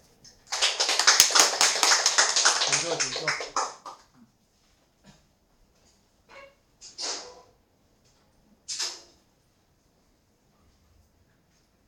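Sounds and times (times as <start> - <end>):
audience applause: 0.5 - 4.1
speech: 2.9 - 3.6.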